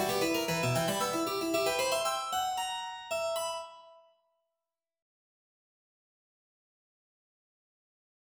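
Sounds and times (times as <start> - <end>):
harpsichord solo milonga waltz: 0.0 - 4.0.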